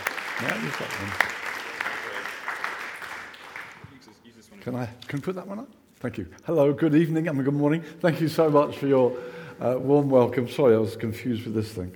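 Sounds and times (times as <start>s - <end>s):
audience applause welcoming a speaker: 0.0s - 4.1s
speech: 0.4s - 1.4s, 4.6s - 11.9s.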